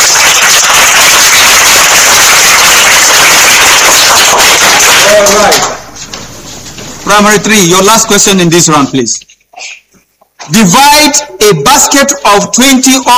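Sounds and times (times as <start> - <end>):
applause: 0.0 - 5.8
speech: 7.2 - 9.4, 10.5 - 13.1.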